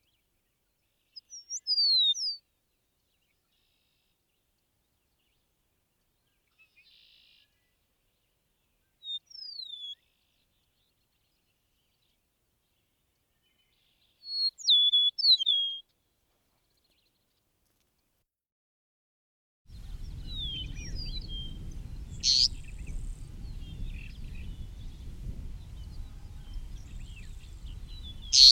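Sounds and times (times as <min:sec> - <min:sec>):
Eastern meadowlark whistled song: 0:01.0 - 0:02.4, 0:06.2 - 0:07.8, 0:08.8 - 0:12.2, 0:13.4 - 0:15.9, 0:19.7 - 0:28.4.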